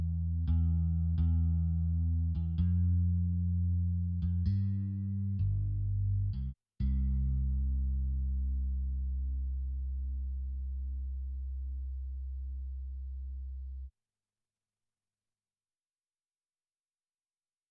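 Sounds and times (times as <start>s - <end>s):
bass: 0.0s - 13.9s.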